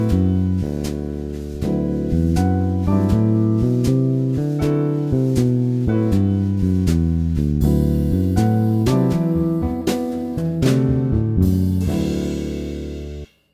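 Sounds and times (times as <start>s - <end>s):
mixolydian mode 13th chord bass exercise: 0.0s - 13.3s.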